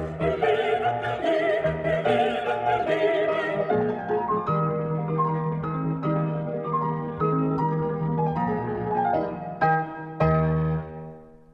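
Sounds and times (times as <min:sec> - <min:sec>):
choir singing: 0:00.0 - 0:04.4
soprano singing a cantata: 0:00.0 - 0:04.9
piano accompaniment: 0:00.0 - 0:11.5.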